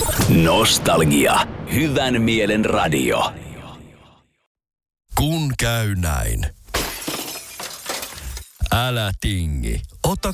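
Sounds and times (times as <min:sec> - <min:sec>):
speech: 0:00.3 - 0:03.4, 0:05.2 - 0:06.6, 0:08.7 - 0:10.3
windshield glass breaking on impact: 0:06.7 - 0:08.7.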